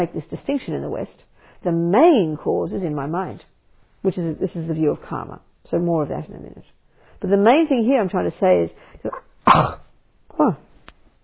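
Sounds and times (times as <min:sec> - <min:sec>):
speech: 0:00.0 - 0:09.8, 0:10.4 - 0:10.7
person coughing after swallowing a flying insect: 0:09.1 - 0:09.9.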